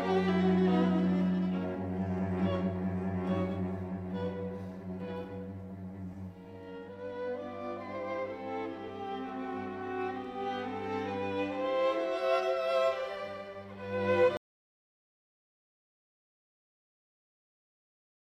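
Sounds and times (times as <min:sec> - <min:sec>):
string quartet in E minor: 0:00.0 - 0:14.4.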